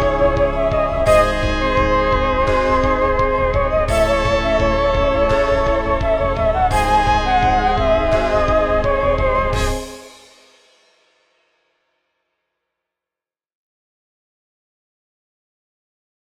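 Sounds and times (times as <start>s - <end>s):
boss intro music: 0.0s - 10.8s.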